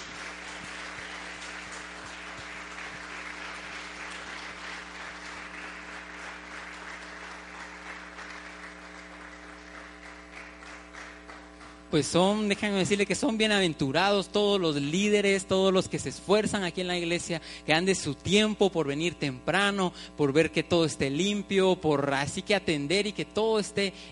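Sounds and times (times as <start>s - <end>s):
crowd applauding indoors: 0.0s - 12.1s
speech: 11.9s - 24.1s.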